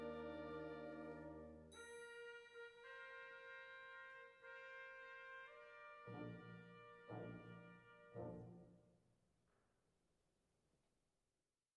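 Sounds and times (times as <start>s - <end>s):
wind ensemble playing: 0.0s - 8.8s.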